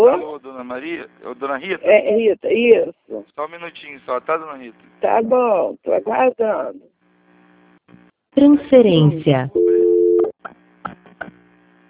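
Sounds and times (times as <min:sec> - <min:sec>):
speech: 0:00.2 - 0:06.9, 0:08.4 - 0:11.4
telephone busy tone after a call was hung up: 0:09.6 - 0:10.3.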